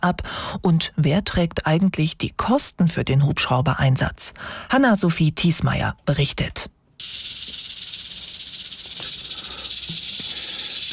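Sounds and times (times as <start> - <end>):
speech: 0.0 - 7.3
snake hissing: 7.0 - 10.9.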